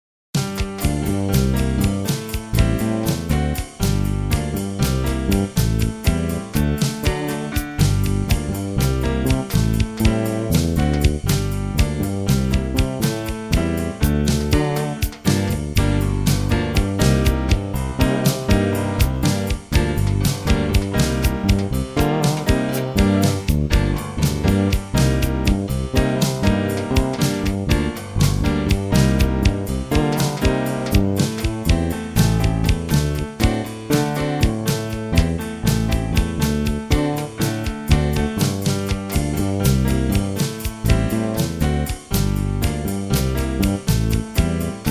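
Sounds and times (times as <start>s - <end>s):
Latin music in G minor: 0.4s - 44.8s.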